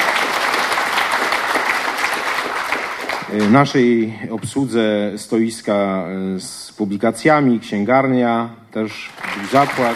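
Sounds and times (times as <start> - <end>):
audience applause: 0.0 - 3.5, 9.1 - 9.9
speech: 3.4 - 9.9.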